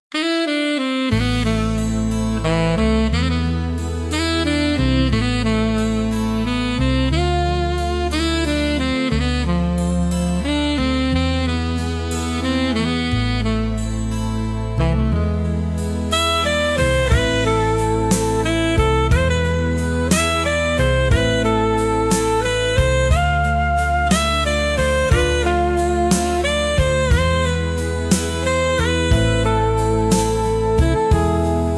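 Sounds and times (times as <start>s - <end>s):
saxophone music: 0.1s - 31.7s.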